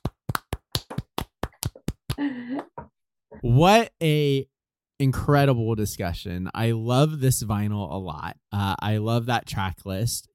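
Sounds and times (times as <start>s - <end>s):
hands clapping: 0.0s - 2.9s
speech: 2.2s - 2.7s, 3.4s - 10.3s.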